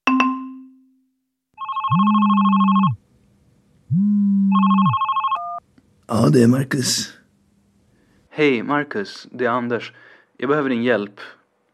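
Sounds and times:
telephone ringing: 1.6s - 3.0s, 4.5s - 5.6s
speech: 1.9s - 2.2s, 6.1s - 7.2s, 8.4s - 11.4s.

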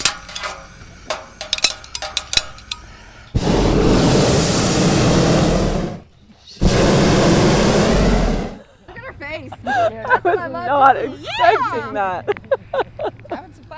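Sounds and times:
metallic clicks and clanks: 0.0s - 3.4s
hot air balloon burner flame roaring: 0.0s - 8.6s
laughter: 8.6s - 13.6s
speech: 10.4s - 12.4s.

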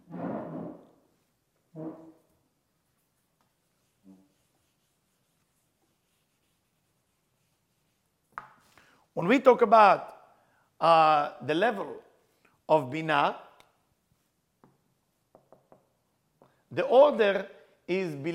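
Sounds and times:
hand-drawing strokes during a lesson: 1.2s - 8.8s
speech: 9.2s - 10.1s, 10.8s - 12.0s, 12.7s - 13.4s, 16.7s - 18.3s.

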